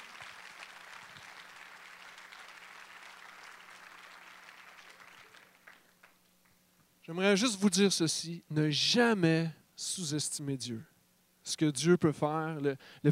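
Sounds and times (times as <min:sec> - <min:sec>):
audience applause: 0:00.0 - 0:06.2
speech: 0:07.1 - 0:13.0.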